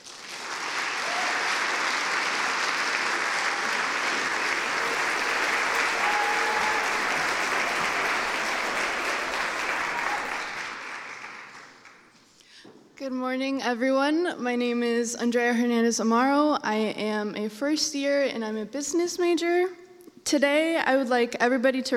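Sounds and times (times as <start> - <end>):
audience applauding speaker: 0.0 - 12.2
speech: 13.3 - 21.9.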